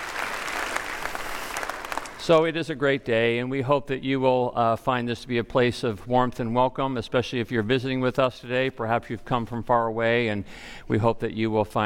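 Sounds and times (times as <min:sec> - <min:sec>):
audience round of applause: 0:00.0 - 0:02.4
speech: 0:02.3 - 0:11.8.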